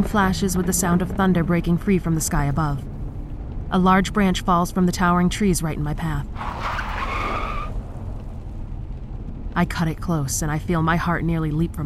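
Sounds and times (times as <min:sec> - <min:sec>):
speech: 0:00.0 - 0:02.9, 0:03.7 - 0:06.6, 0:09.6 - 0:11.8
steady low engine rumble: 0:00.0 - 0:11.8
car tires skidding while swerving: 0:06.4 - 0:07.8.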